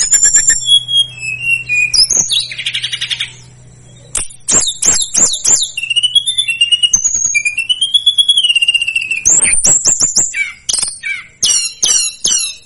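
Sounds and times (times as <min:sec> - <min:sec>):
Sunda whistling thrush singing: 0:00.0 - 0:12.6.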